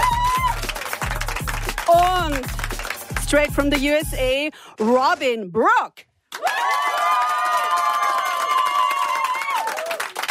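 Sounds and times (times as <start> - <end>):
live studio audience clapping and cheering: 0.0 - 4.3, 6.3 - 10.2
speech: 3.3 - 6.9.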